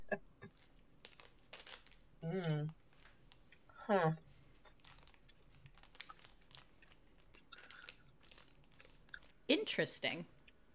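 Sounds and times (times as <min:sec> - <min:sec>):
chewing fruit snack gummies: 0:00.5 - 0:09.8
speech: 0:02.3 - 0:02.8, 0:03.9 - 0:04.3, 0:09.8 - 0:10.3.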